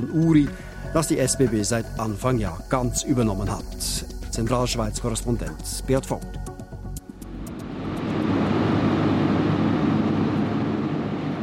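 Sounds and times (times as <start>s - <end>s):
speech: 0.0s - 6.4s
hydroelectric turbines roaring: 6.9s - 11.4s.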